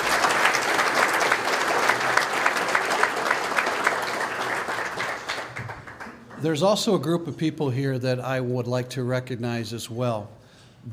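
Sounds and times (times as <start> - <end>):
audience applause: 0.0 - 6.5
speech: 6.4 - 10.9.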